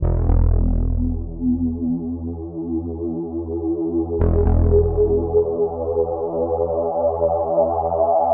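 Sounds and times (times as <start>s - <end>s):
resonant harmonic drone in E at 115 bpm: 0.0s - 8.3s.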